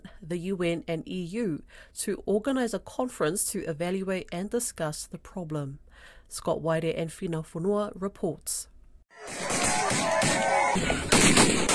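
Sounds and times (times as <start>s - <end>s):
speech: 0.3s - 11.7s
gunfire from gunmen in an armed ambush in Enga province, Papua New Guinea: 9.2s - 11.7s.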